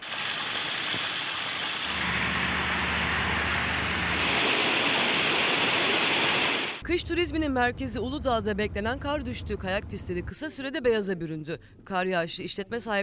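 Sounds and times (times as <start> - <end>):
rainwater rushing through flooded streets: 0.0 - 6.8
speech: 6.9 - 13.0.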